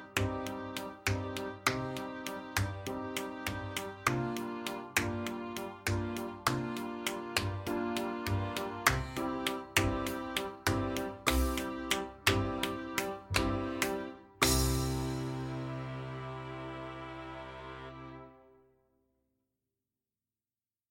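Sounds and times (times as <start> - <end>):
trumpet: 0.0 - 18.6.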